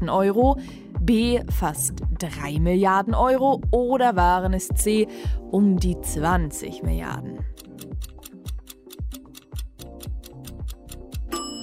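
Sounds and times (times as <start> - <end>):
speech: 0.0 - 7.6
microwave timer ticking: 7.5 - 11.6
microwave bright electronic beep: 11.3 - 11.6.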